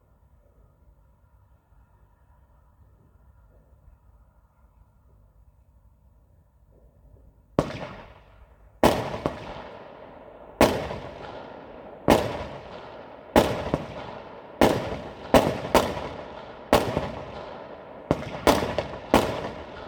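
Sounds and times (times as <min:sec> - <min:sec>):
faint low hum: 0:00.0 - 0:08.8
New Year's Eve fireworks bangs: 0:07.6 - 0:19.8.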